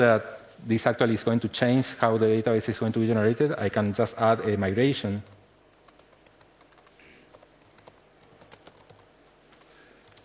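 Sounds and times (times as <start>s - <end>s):
speech: 0.0s - 5.4s
low steady hum: 0.0s - 10.2s
typing on a computer keyboard: 5.2s - 10.2s.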